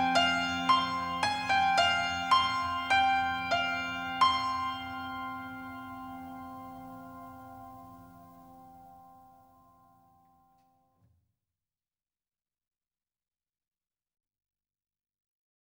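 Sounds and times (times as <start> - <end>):
instrumental piano music: 0.0 - 9.4.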